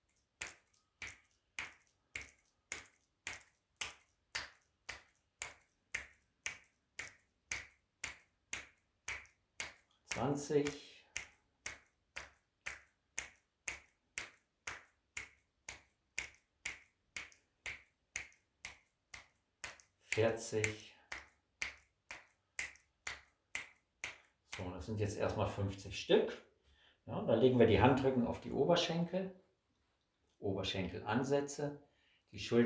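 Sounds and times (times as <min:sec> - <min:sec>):
fingers flicking against the heel of the hand during a relaxation exercise: 0:00.0 - 0:24.7
speech: 0:10.2 - 0:10.9, 0:20.2 - 0:20.9, 0:24.8 - 0:26.5, 0:27.1 - 0:29.4, 0:30.4 - 0:32.6.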